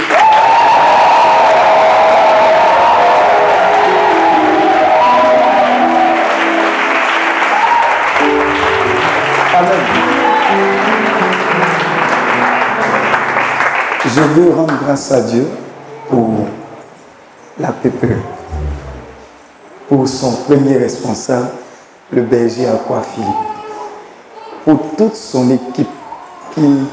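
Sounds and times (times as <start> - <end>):
audience cheering and applauding: 0.0 - 14.0
speech: 14.1 - 16.6, 17.8 - 18.4, 19.9 - 23.5, 24.7 - 26.0, 26.6 - 26.9
tonal vocal sounds: 18.0 - 19.6.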